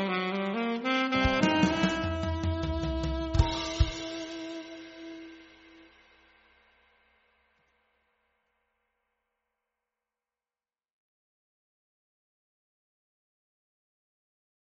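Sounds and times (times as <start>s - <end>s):
alto saxophone playing: 0.0s - 6.0s.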